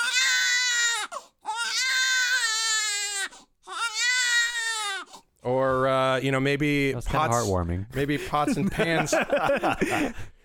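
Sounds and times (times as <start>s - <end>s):
baby crying: 0.0s - 5.3s
speech: 5.4s - 10.4s
laughter: 8.1s - 10.3s.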